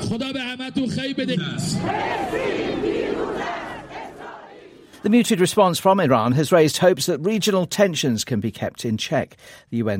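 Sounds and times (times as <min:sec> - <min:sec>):
speech: 0:00.1 - 0:03.8, 0:05.0 - 0:09.9
crowds chanting anti-Israeli slogans in Tehran: 0:01.7 - 0:05.1.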